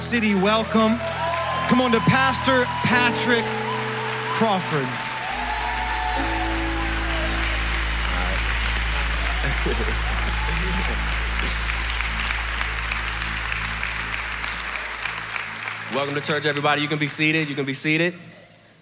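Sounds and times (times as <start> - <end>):
church congregation applauding: 0.0 - 18.8
speech: 0.1 - 1.1, 1.7 - 3.6, 4.4 - 5.0, 9.4 - 11.6, 15.9 - 18.4
low sustained tones: 3.5 - 15.3.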